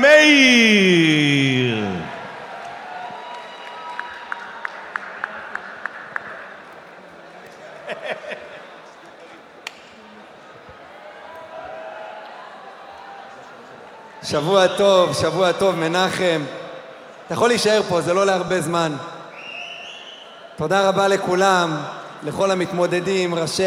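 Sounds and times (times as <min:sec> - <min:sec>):
audience applause: 0:00.0 - 0:06.9
laughter: 0:07.7 - 0:08.8
speech: 0:14.3 - 0:16.6, 0:17.3 - 0:19.1, 0:20.6 - 0:23.6.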